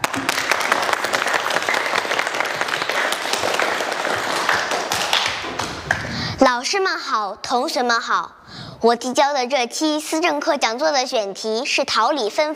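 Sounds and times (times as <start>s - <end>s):
applause: 0.0s - 6.2s
speech: 6.4s - 12.5s.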